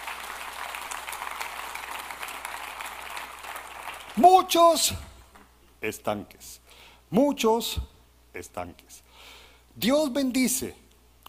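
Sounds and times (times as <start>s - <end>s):
audience applauding: 0.0s - 4.5s
speech: 4.2s - 5.1s, 5.8s - 10.8s.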